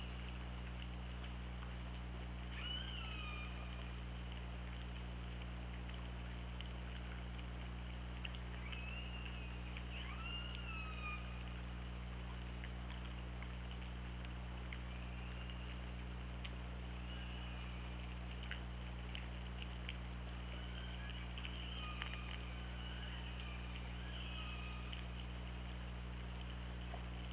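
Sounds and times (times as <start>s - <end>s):
low hum: 0.0s - 27.3s
killer whale calls: 2.5s - 3.9s, 8.6s - 11.6s, 17.0s - 18.2s, 20.4s - 25.3s.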